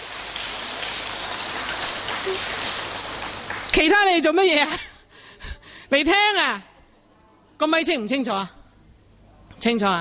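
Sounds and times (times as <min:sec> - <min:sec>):
audience applause: 0:00.0 - 0:04.0
speech: 0:02.3 - 0:02.6, 0:03.8 - 0:04.9, 0:05.9 - 0:06.7, 0:07.6 - 0:08.6, 0:09.6 - 0:10.0.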